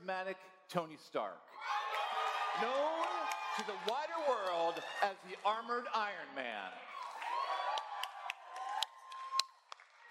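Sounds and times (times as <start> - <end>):
speech: 0.1 - 1.8, 2.6 - 6.9
crowd noise and cheering: 1.6 - 6.1, 6.8 - 10.0
clapping close to a microphone: 2.6 - 5.5, 7.0 - 10.0.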